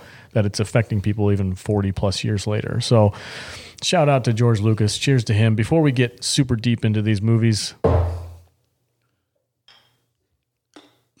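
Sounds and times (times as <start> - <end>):
speech: 0.4 - 8.2
plastic bottle thud: 7.8 - 8.4
plastic bottle knocks and rattles while handled: 9.7 - 10.0.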